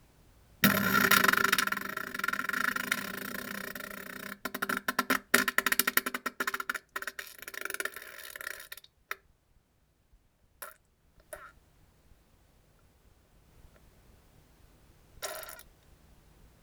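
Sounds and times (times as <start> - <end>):
fart: 0.6 - 8.7, 15.2 - 15.6.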